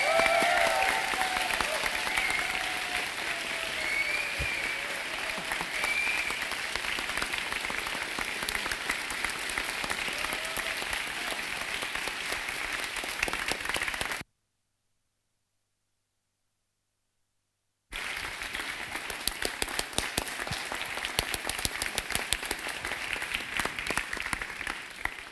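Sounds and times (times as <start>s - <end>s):
audience applause: 0.0s - 14.2s, 17.9s - 25.2s.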